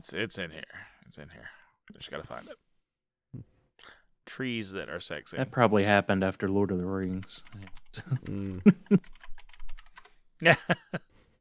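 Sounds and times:
speech: 0:00.0 - 0:02.7, 0:03.3 - 0:09.3, 0:10.4 - 0:11.2
typing on a computer keyboard: 0:06.8 - 0:10.2.

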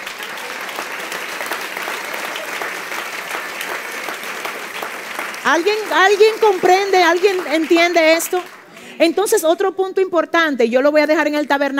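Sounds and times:
audience applause: 0:00.0 - 0:09.2
speech: 0:05.5 - 0:11.7.

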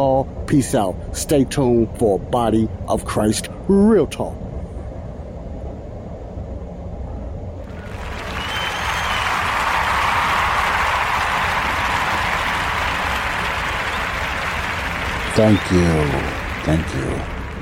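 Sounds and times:
speech: 0:00.2 - 0:04.4, 0:15.4 - 0:17.3
crowd applause sound effect: 0:07.7 - 0:17.6.

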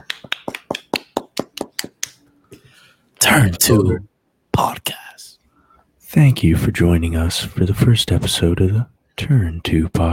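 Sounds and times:
hand claps: 0:00.0 - 0:02.3
speech: 0:03.2 - 0:05.0, 0:06.1 - 0:10.1.

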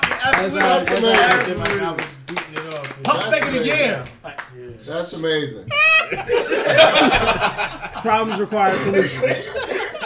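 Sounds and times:
hands clapping: 0:00.0 - 0:04.7
speech: 0:00.3 - 0:09.8
laughter: 0:05.7 - 0:10.0.

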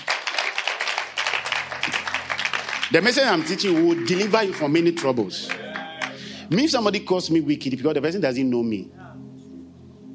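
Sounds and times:
crowd clapping: 0:00.0 - 0:06.7
speech: 0:02.9 - 0:05.6, 0:06.5 - 0:09.0.

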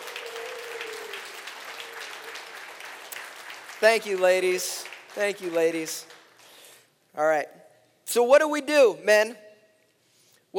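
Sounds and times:
applause for the women serving breakfast at a men's gathering: 0:00.0 - 0:06.9
speech: 0:03.8 - 0:06.2, 0:07.2 - 0:09.4.

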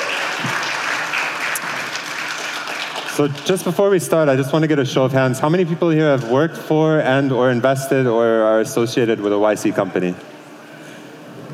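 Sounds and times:
audience applause: 0:00.0 - 0:04.1
speech: 0:03.2 - 0:10.3.

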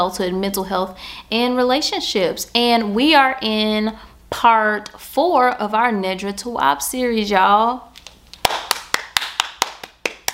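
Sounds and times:
speech: 0:00.0 - 0:07.9
hand claps: 0:08.0 - 0:10.3.

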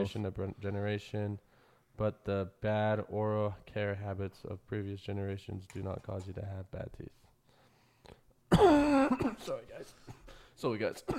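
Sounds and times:
speech: 0:00.0 - 0:07.2, 0:08.5 - 0:11.1
person coughing into the microphone: 0:08.5 - 0:10.3.

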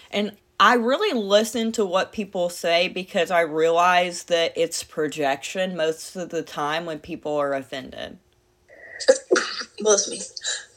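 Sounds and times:
speech: 0:00.1 - 0:08.2, 0:09.0 - 0:10.6
person with allergies sneezing: 0:08.8 - 0:09.8.

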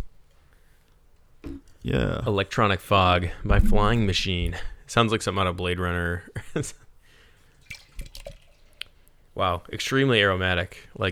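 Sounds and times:
speech: 0:01.5 - 0:06.8, 0:09.4 - 0:11.1
beer pouring into glasses: 0:07.5 - 0:09.4.

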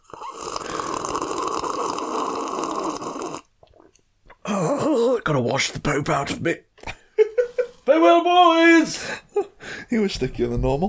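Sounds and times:
slurping a drink of squash: 0:00.0 - 0:04.9
gulps: 0:00.0 - 0:05.2
speech: 0:05.3 - 0:06.7, 0:07.9 - 0:09.2, 0:09.9 - 0:10.8.

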